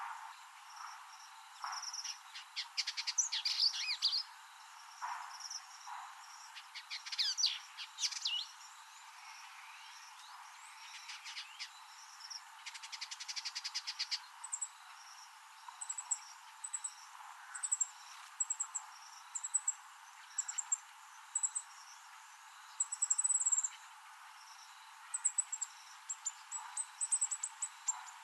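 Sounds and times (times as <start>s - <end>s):
Vidua codringtoni indigobird singing: 0.6s - 28.2s.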